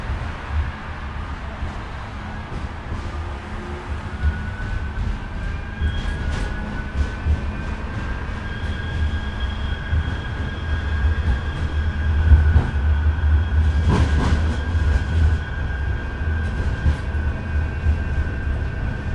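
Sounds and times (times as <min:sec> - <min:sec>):
tram screeching to a stop from high speed inside a UK big city tram: 0:00.0 - 0:19.1.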